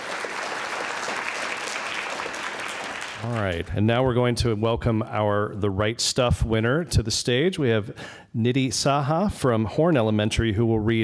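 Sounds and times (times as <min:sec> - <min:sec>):
audience applause: 0:00.0 - 0:03.7
speech: 0:03.2 - 0:11.0.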